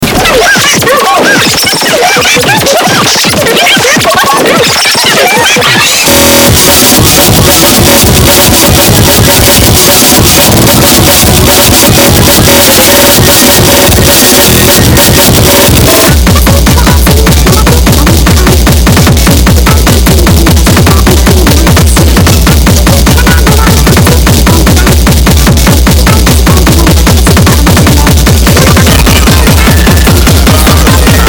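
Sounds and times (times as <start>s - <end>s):
laughter: 0.0s - 24.9s, 25.7s - 31.2s
hardcore music: 0.0s - 31.2s.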